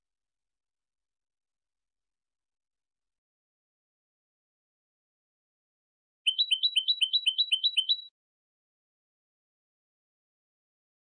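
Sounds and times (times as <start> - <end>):
European goldfinch singing: 6.2 - 8.1.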